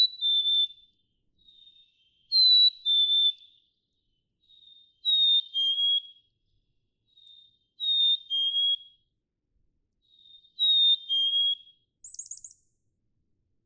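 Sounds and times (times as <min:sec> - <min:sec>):
Black-capped chickadee whistled phrases: 0:00.0 - 0:00.9, 0:01.5 - 0:03.6, 0:04.6 - 0:06.3, 0:07.8 - 0:09.0, 0:10.5 - 0:12.6.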